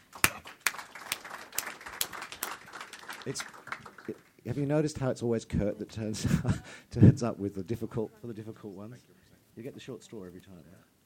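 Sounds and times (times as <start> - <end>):
audience clapping: 0.0 - 4.7
speech: 3.2 - 10.9.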